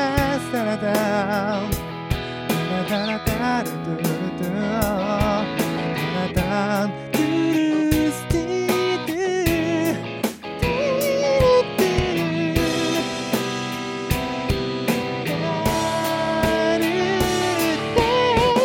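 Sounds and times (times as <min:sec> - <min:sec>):
intro drum playing: 0:00.2 - 0:06.5, 0:07.2 - 0:18.6.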